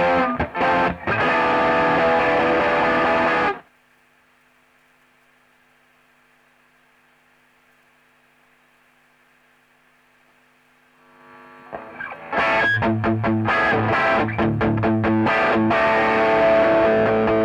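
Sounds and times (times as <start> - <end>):
electric guitar: 0.0 - 3.6, 11.2 - 17.4.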